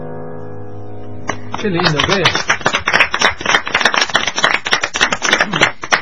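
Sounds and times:
people applauding: 0:01.3 - 0:06.0
speech: 0:01.7 - 0:02.5.

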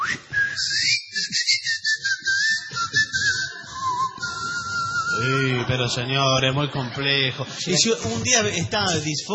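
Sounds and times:
human whistling: 0:00.0 - 0:05.4
laughter: 0:02.3 - 0:09.3
speech: 0:05.2 - 0:09.3.

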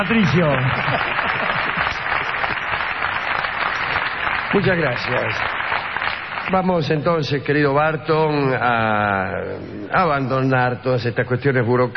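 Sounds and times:
speech: 0:00.0 - 0:01.4, 0:04.5 - 0:05.6, 0:06.5 - 0:11.9
applause: 0:00.0 - 0:07.5.

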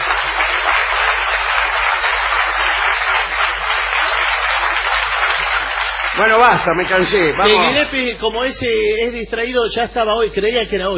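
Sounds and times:
audience applause: 0:00.0 - 0:08.2
speech: 0:06.2 - 0:10.9.

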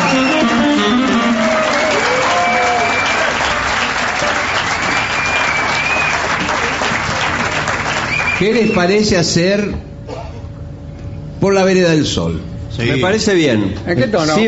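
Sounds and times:
audience applause: 0:00.0 - 0:08.7
speech: 0:08.4 - 0:09.9, 0:11.4 - 0:14.4.

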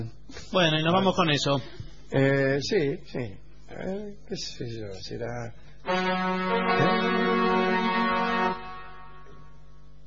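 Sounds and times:
speech: 0:00.0 - 0:07.3
boat horn of boat crossing the bay: 0:05.9 - 0:09.5.

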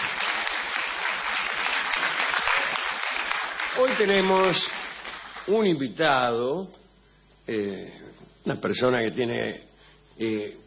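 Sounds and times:
audience applause: 0:00.0 - 0:05.5
speech: 0:03.8 - 0:04.9, 0:05.5 - 0:06.8, 0:07.5 - 0:10.6.

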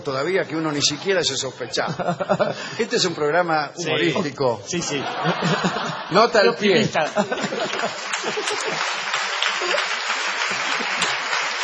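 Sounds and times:
speech: 0:00.0 - 0:10.0
laughter: 0:01.6 - 0:02.9, 0:04.0 - 0:11.6
audience applauding: 0:07.0 - 0:11.6.

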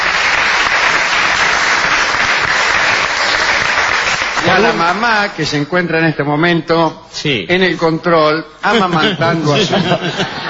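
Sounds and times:
applause: 0:00.0 - 0:05.3
speech: 0:04.5 - 0:10.4
laughter: 0:08.7 - 0:10.4.

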